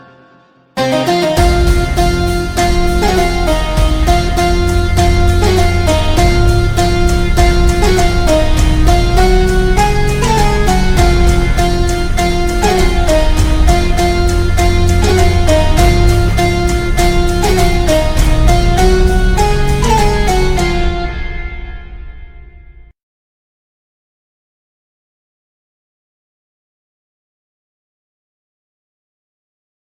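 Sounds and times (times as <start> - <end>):
background music: 0.0 - 22.9.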